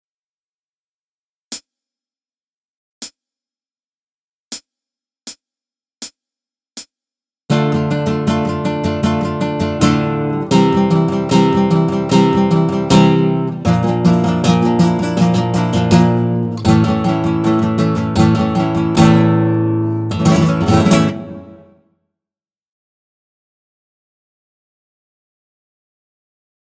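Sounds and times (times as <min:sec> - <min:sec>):
chord example: 0:07.5 - 0:21.8.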